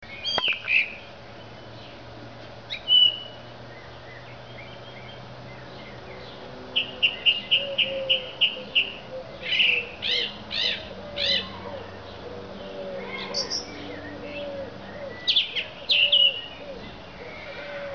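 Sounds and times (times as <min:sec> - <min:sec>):
thrush song of clear whistled phrases and chirps: 0:02.7 - 0:12.1, 0:13.0 - 0:16.7.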